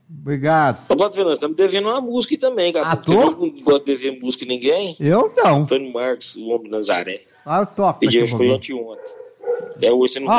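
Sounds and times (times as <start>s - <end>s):
speech: 0.2s - 10.3s
several dogs barking and yelping: 9.0s - 9.8s.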